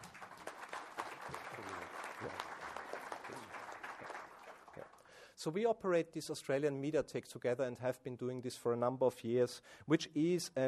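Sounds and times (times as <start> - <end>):
audience applause welcoming a new director and CEO to a FIAF gathering: 0.0 - 5.2
speech: 5.4 - 10.6.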